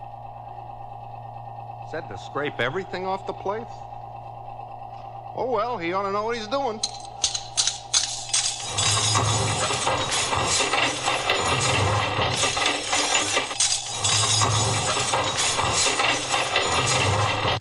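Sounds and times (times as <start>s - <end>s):
speech: 1.9s - 3.9s, 5.4s - 7.1s
running garbage disposal grinding: 4.9s - 17.5s
silverware clattering inside a running garbage disposal: 6.8s - 17.0s.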